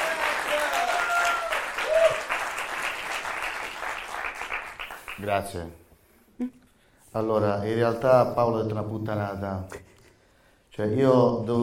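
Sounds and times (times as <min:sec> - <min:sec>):
audience applause: 0:00.0 - 0:05.4
speech: 0:05.2 - 0:05.8, 0:06.4 - 0:09.8, 0:10.8 - 0:11.6.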